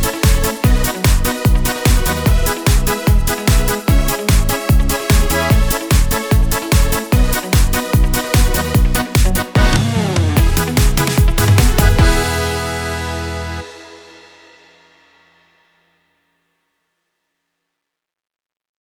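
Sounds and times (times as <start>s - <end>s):
Yamaha PSR S670 keyboard style: 0.0s - 14.7s.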